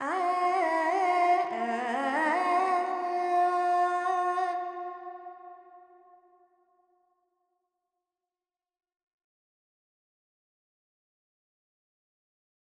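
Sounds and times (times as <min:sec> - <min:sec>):
Carnatic female vocal alaps in Dorian: 0:00.0 - 0:05.2.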